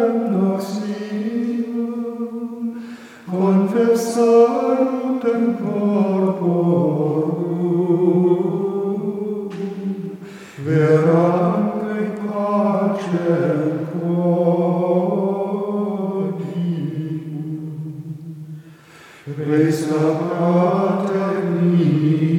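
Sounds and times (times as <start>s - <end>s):
Gregorian chant singing: 0.0s - 22.3s.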